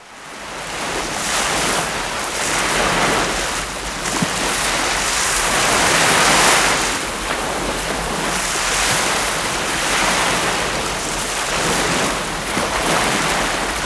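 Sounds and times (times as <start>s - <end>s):
sea water: 0.0s - 13.8s.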